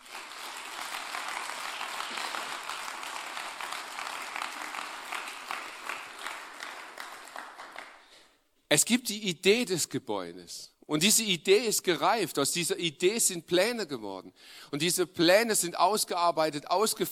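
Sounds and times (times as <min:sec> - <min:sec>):
crowd applauding: 0:00.0 - 0:08.1
speech: 0:08.7 - 0:17.1.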